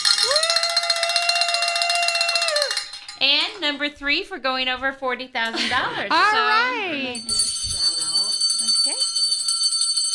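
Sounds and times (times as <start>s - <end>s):
bell ringing: 0.0s - 3.4s, 7.1s - 10.1s
speech: 3.6s - 7.5s.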